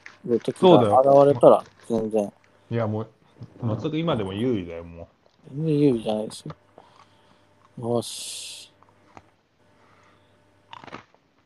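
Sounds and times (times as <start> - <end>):
quiet hum: 0.0 - 11.4
speech: 0.3 - 6.6, 7.8 - 8.7
person eating and chewing food: 10.7 - 11.4.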